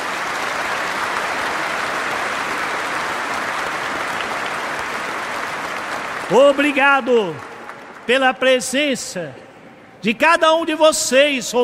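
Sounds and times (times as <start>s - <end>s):
crowd applause: 0.0s - 8.5s
speech: 6.3s - 7.5s, 8.1s - 9.4s, 10.0s - 11.6s.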